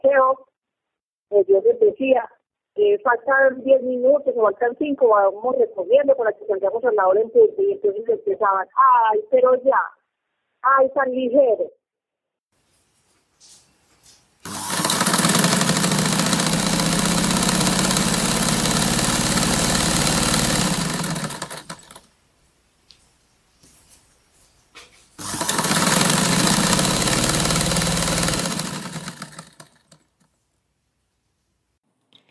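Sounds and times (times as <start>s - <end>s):
speech: 0.1s - 0.5s, 1.3s - 10.0s, 10.6s - 11.8s
industrial sewing machines running: 14.5s - 22.1s, 25.2s - 30.0s.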